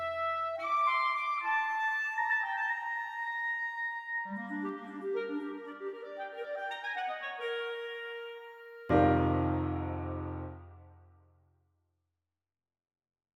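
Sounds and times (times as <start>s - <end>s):
clarinet: 0.0s - 10.6s
piano: 0.0s - 11.0s.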